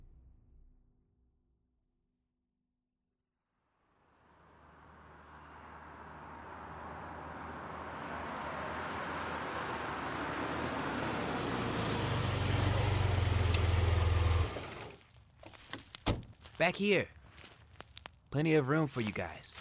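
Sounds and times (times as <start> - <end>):
prisoner transport vehicle engine running: 4.9 - 16.6
speech: 16.6 - 17.2, 18.3 - 19.5.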